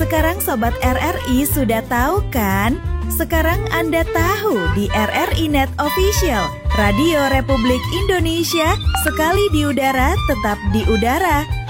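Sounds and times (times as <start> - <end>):
speech: 0.1 - 11.6
telephone ringing with electronic melody: 6.0 - 9.8.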